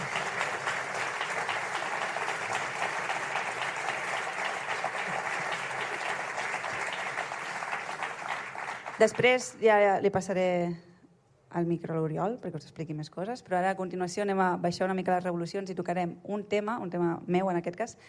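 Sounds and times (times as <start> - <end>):
audience applause after song: 0.0 - 9.2
speech: 9.0 - 10.9, 11.5 - 18.0.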